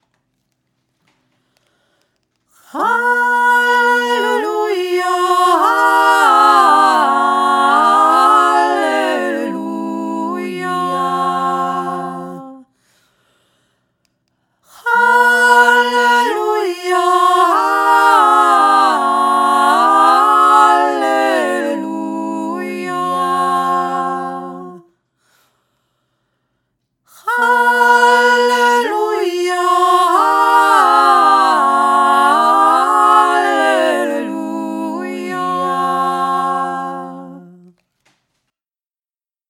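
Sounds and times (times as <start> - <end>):
choral hymn singing: 2.6 - 12.7, 14.7 - 24.9, 27.1 - 37.8.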